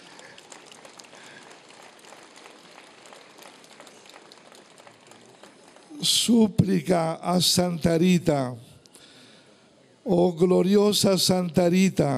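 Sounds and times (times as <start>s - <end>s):
audience applause: 0.0s - 6.1s
speech: 6.0s - 8.7s, 10.1s - 12.1s.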